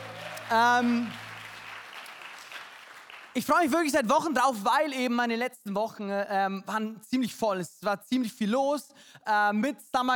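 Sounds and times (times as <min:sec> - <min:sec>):
crowd applause: 0:00.0 - 0:03.4
speech: 0:00.5 - 0:01.2, 0:03.4 - 0:10.1.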